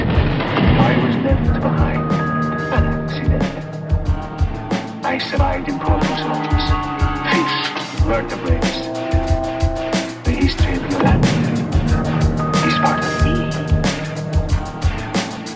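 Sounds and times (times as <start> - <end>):
instrumental lo-fi hip-hop music: 0.2 - 15.5.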